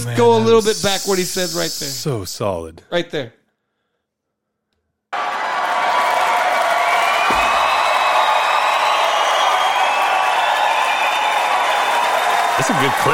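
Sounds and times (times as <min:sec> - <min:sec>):
speech: 0:00.0 - 0:03.4, 0:12.6 - 0:13.1
large crowd applause and cheering: 0:05.1 - 0:13.1.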